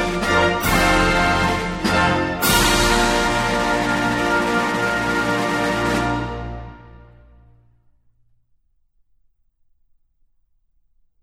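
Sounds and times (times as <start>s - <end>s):
anthem music: 0.0s - 7.8s.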